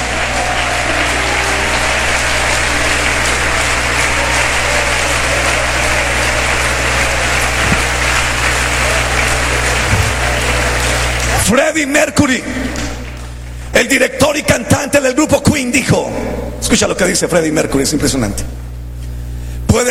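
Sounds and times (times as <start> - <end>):
audience applause: 0.0 - 11.6, 12.4 - 13.5
speech: 11.5 - 12.7, 13.8 - 18.7.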